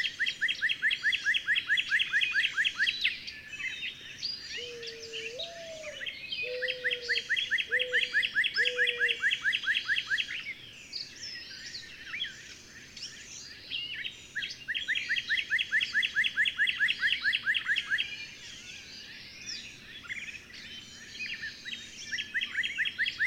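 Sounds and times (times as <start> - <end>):
bird chirps: 0.0 - 23.2.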